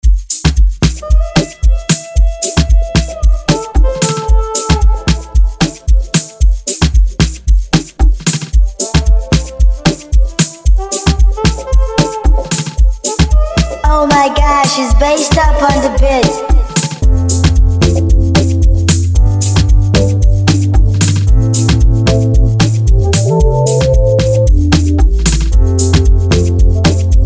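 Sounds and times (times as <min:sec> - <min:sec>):
instrumental music: 0:00.2 - 0:27.2.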